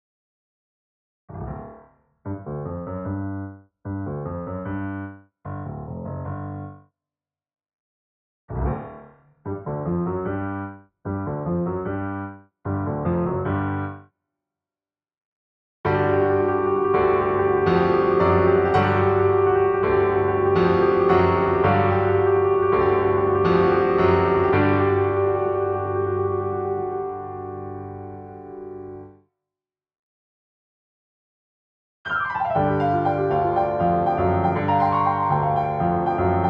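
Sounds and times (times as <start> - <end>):
piano medley: 1.3 - 6.8, 8.5 - 14.0, 15.9 - 29.1, 32.1 - 36.4.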